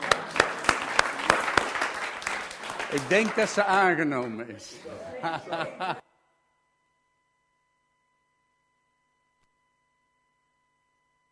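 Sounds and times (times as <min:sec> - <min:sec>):
applause at a church gathering after a prayer: 0:00.0 - 0:04.4
speech: 0:02.9 - 0:06.1
laughter: 0:03.0 - 0:06.0.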